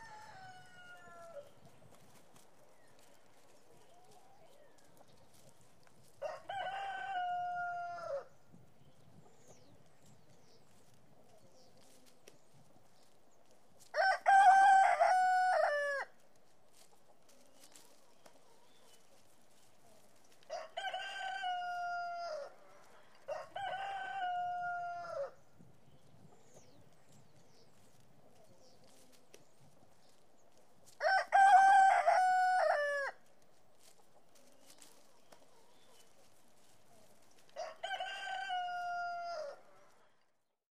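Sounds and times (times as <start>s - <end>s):
rooster crowing: 0.0s - 1.4s, 6.2s - 8.3s, 14.0s - 16.1s, 20.5s - 22.5s, 23.3s - 25.4s, 31.0s - 33.2s, 37.6s - 39.8s.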